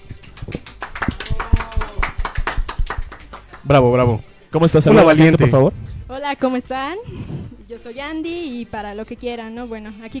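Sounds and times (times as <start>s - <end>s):
crowd applauding: 0.1s - 3.7s
speech: 0.5s - 0.7s, 3.7s - 10.1s.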